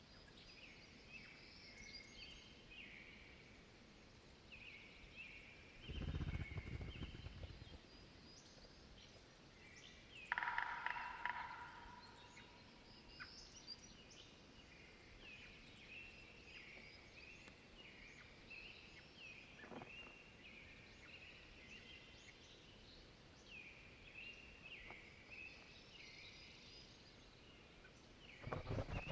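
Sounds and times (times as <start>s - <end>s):
dawn chorus of American Robins and other birds in a temperate deciduous forest: 4.5s - 29.1s
flutters: 5.8s - 7.9s, 28.3s - 29.1s.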